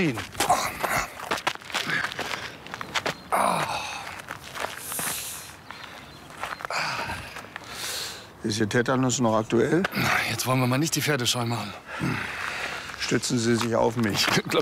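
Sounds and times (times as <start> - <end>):
speech: 0.0 - 0.4, 8.4 - 12.4, 13.1 - 14.6
footsteps on crunchy ground: 0.0 - 7.8, 12.6 - 14.6.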